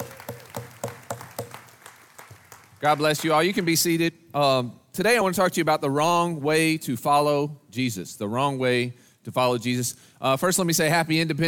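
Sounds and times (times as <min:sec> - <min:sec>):
audience clapping hands: 0:00.0 - 0:04.0
speech: 0:02.8 - 0:11.4.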